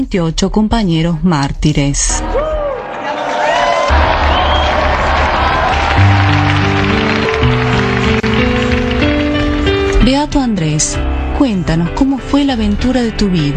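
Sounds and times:
speech: 0:00.0 - 0:02.4, 0:10.0 - 0:13.5
audience applause: 0:02.8 - 0:10.0.

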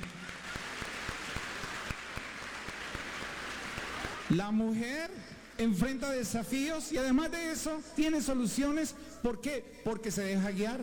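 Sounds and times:
audience applause: 0:00.0 - 0:04.4
speech: 0:04.3 - 0:10.8.

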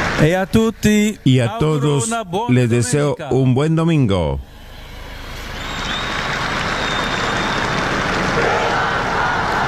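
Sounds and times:
speech: 0:00.2 - 0:04.6
large crowd of young people shouting and cheering: 0:04.5 - 0:09.6
clapping: 0:05.3 - 0:09.6.

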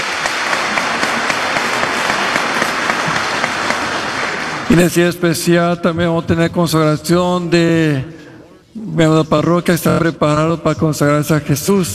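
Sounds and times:
audience applause: 0:00.0 - 0:04.8
speech: 0:04.7 - 0:08.2, 0:08.8 - 0:11.9.

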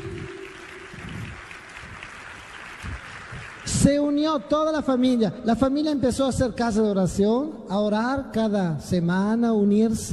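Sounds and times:
congregation applause during a church service: 0:00.0 - 0:05.0
speech: 0:03.8 - 0:10.1.

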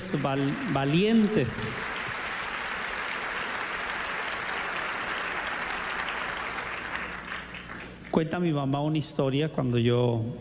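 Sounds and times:
audience applause: 0:00.0 - 0:08.1
speech: 0:00.1 - 0:01.9, 0:08.2 - 0:10.3.

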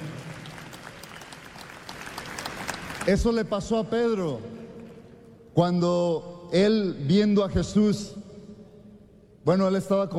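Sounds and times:
congregation applause at a church service: 0:00.0 - 0:04.4
speech: 0:03.1 - 0:04.6, 0:05.6 - 0:08.2, 0:09.4 - 0:10.1.

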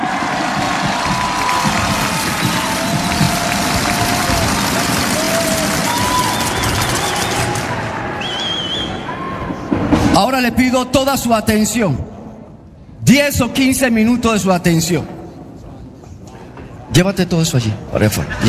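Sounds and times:
audience applause and cheering: 0:00.0 - 0:09.8
speech: 0:10.2 - 0:12.2, 0:13.1 - 0:15.2, 0:17.0 - 0:18.4.

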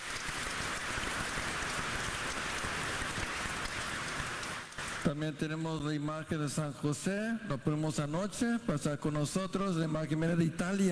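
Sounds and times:
audience applauding: 0:00.0 - 0:05.1
speech: 0:05.1 - 0:10.9.

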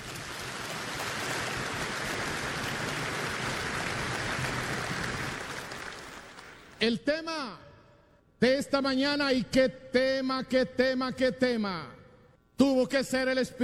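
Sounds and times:
audience clapping: 0:00.0 - 0:06.8
speech: 0:06.8 - 0:07.6, 0:08.4 - 0:12.0, 0:12.6 - 0:13.6.

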